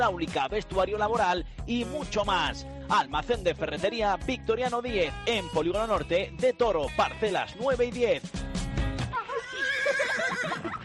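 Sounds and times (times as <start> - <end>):
speech: 0.0 - 8.5
laughter: 9.1 - 10.8
horse neighing in an ad for the Centro Hípico Ecus Duri riding centre: 9.3 - 10.6.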